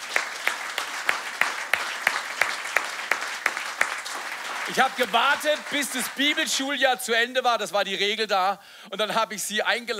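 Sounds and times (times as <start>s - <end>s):
audience applause: 0.0s - 6.9s
speech: 4.7s - 9.9s.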